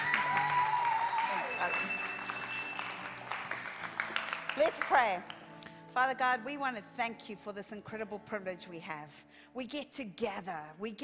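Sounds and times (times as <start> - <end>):
church congregation applause welcoming a pastor to the stage: 0.0 - 5.5
faint sustained musical tones: 0.8 - 4.8
speech: 4.6 - 5.4, 6.0 - 11.0.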